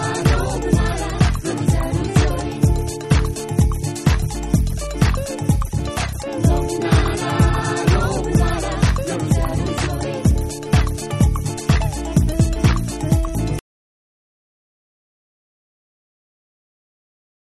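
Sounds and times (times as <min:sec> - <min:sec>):
acoustic music mix: 0:00.0 - 0:13.6.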